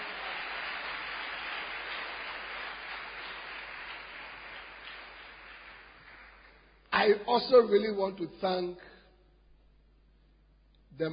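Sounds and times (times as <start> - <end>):
audience clapping hands: 0.0 - 7.3
speech: 7.0 - 8.9.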